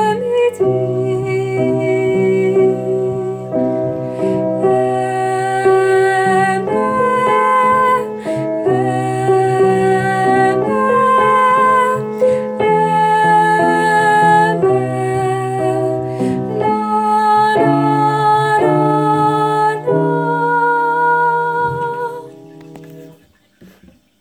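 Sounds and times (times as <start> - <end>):
tenor singing: 0.0 - 22.3.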